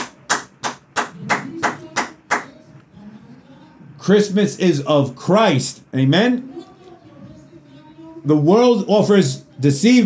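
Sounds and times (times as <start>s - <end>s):
audience clapping in unison rhythm: 0.0s - 2.5s
low murmur of voices: 1.1s - 10.0s
speech: 4.0s - 6.6s, 8.2s - 10.0s.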